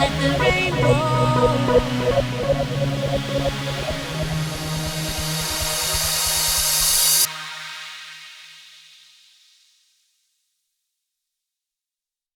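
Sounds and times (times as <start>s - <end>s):
trance music: 0.0s - 8.2s.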